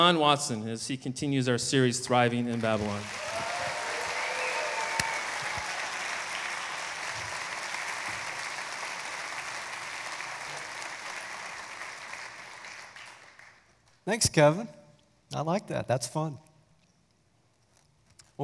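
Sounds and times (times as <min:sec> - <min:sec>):
speech: 0:00.0 - 0:03.5, 0:14.1 - 0:16.5
large audience applause welcoming a speaker: 0:02.5 - 0:13.7
whistles and cheers: 0:03.0 - 0:08.4.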